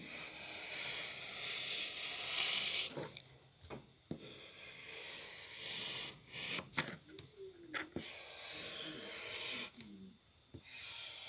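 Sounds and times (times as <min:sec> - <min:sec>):
drawing tool scratching on paper: 0:00.0 - 0:03.0, 0:04.1 - 0:07.0, 0:07.9 - 0:09.8.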